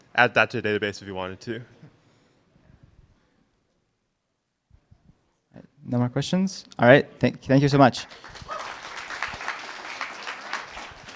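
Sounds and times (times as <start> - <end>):
speech: 0.2 - 1.8, 5.9 - 8.6
audience applause: 8.1 - 11.1.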